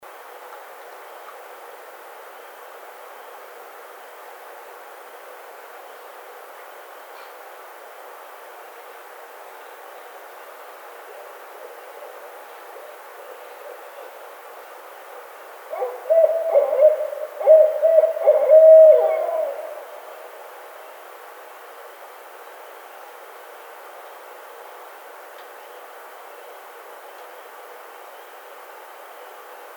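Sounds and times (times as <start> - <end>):
barred owl hooting: 15.7 - 20.5.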